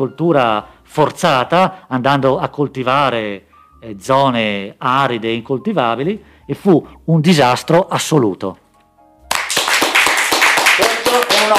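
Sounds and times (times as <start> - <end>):
speech: 0.0 - 8.6
audience applause: 9.3 - 11.5.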